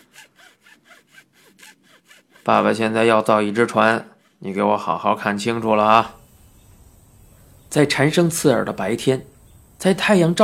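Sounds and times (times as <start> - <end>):
hand saw cutting wood: 0.0 - 4.6
speech: 2.4 - 6.2, 7.7 - 10.4.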